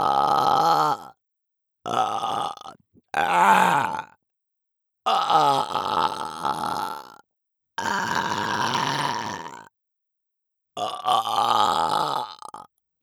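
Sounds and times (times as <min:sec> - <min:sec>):
person burping: 0:00.0 - 0:01.1, 0:01.9 - 0:04.1, 0:05.1 - 0:07.2, 0:07.8 - 0:09.6, 0:10.8 - 0:12.7.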